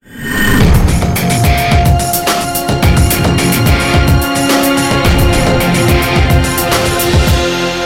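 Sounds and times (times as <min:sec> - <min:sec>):
spawn sound effect: 0:00.0 - 0:07.7.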